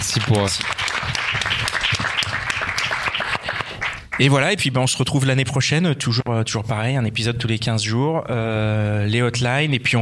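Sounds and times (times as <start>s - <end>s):
crowd applauding: 0.0s - 4.4s
speech: 0.1s - 1.7s, 4.2s - 10.0s.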